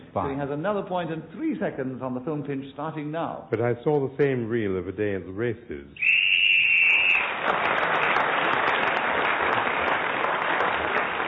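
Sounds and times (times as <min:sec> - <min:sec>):
speech: 0:00.2 - 0:06.2
shrill whistle blast signalling end of time: 0:06.0 - 0:07.4
steady loud applause: 0:06.4 - 0:11.2.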